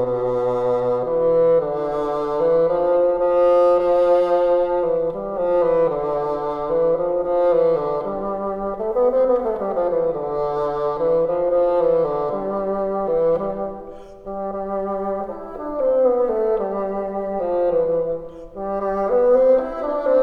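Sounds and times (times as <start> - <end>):
bassoon: 0.0 - 20.2.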